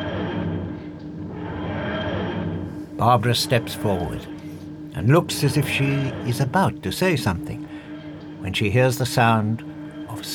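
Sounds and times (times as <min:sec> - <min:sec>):
constant background hum of the ship: 0:00.0 - 0:10.3
spaceship engines wheezing roar: 0:02.8 - 0:10.3
speech: 0:03.0 - 0:04.3, 0:05.0 - 0:07.7, 0:08.4 - 0:10.3.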